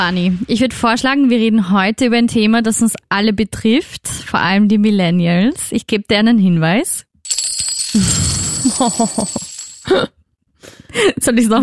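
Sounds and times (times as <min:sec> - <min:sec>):
speech: 0:00.0 - 0:07.1, 0:07.9 - 0:11.6
coins clinking together: 0:07.3 - 0:10.0
laughter: 0:08.6 - 0:09.6.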